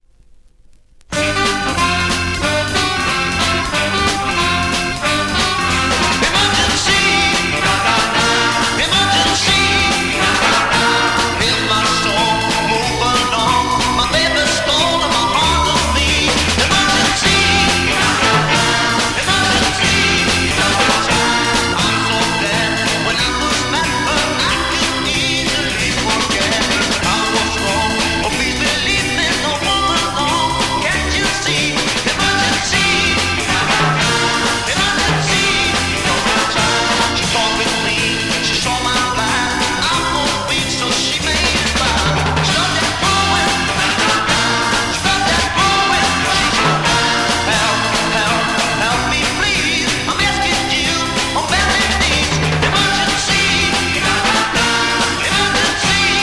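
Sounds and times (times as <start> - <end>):
blues music: 1.0 - 56.2.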